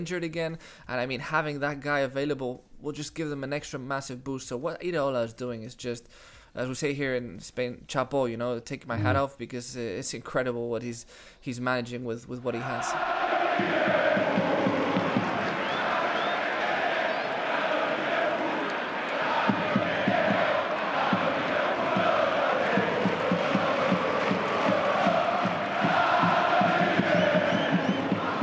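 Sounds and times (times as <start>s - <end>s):
speech: 0.0s - 14.1s
football crowd singing in stadium: 12.7s - 28.4s.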